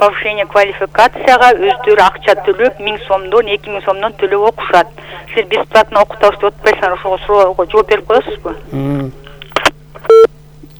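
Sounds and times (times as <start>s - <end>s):
speech: 0.0s - 9.2s, 10.0s - 10.3s
short electronic beep from a phone line after a call drops: 10.0s - 10.7s.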